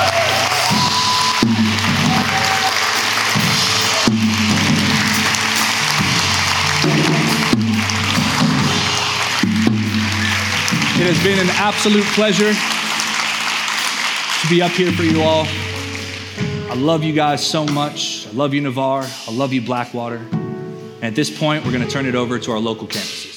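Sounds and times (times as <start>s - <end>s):
church audience clapping: 0.0s - 16.9s
low sustained musical notes: 2.9s - 18.8s
speech: 11.2s - 12.8s, 14.5s - 15.7s, 16.7s - 20.4s, 21.0s - 23.2s.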